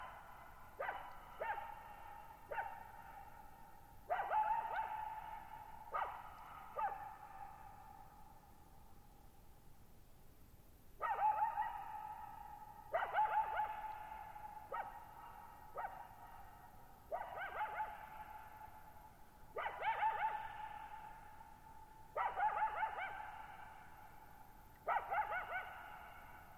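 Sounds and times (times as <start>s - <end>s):
coyote barking and yipping: 0.0s - 3.1s, 4.1s - 7.6s, 11.0s - 16.4s, 17.1s - 18.4s, 19.5s - 21.2s, 22.2s - 23.6s, 24.8s - 26.4s.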